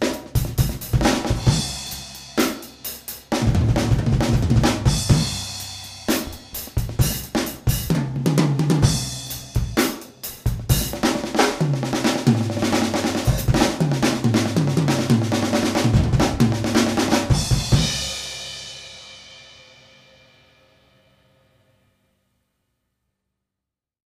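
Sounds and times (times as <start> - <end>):
funky drum groove with various influences: 0.0 - 18.8.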